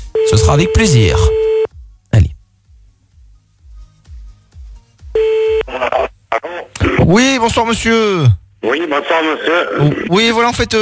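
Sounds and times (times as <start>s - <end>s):
short electronic telephone keypad bursts: 0.2s - 1.7s
steady telephone dial tone hum: 0.2s - 1.7s, 5.2s - 5.7s
speech: 0.3s - 1.4s, 7.1s - 10.8s.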